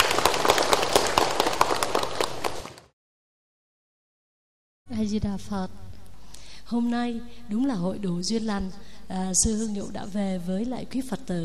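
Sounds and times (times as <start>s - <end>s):
audience applause: 0.0s - 2.9s
speech: 5.0s - 5.8s, 6.7s - 11.4s.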